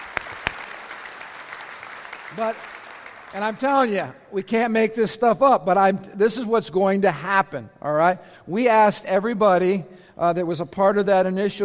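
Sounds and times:
audience applause: 0.0 - 3.8
speech: 2.3 - 11.6.

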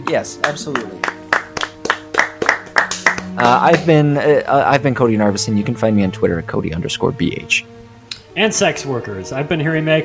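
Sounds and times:
speech: 0.0 - 1.2, 3.4 - 7.8, 8.4 - 10.0
audience applause: 0.4 - 3.9.

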